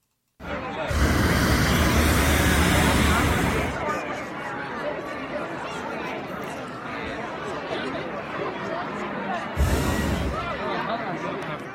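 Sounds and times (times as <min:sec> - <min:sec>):
crowd murmuring and chattering: 0:00.4 - 0:11.7
hot air balloon burners whooshing: 0:00.9 - 0:03.9, 0:09.6 - 0:10.6.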